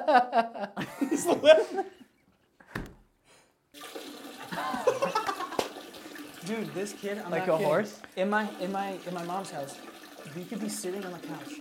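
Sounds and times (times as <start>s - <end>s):
laughter: 0.0s - 2.1s, 4.4s - 5.7s
speech: 0.1s - 2.0s, 6.5s - 11.5s
loud urine stream into toilet: 3.7s - 11.5s.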